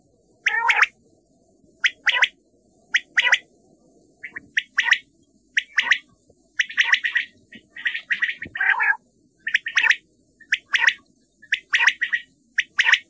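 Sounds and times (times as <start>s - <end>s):
common quail calling: 0.4s - 0.9s, 1.8s - 2.4s, 3.0s - 3.4s, 4.2s - 5.0s, 5.6s - 13.0s.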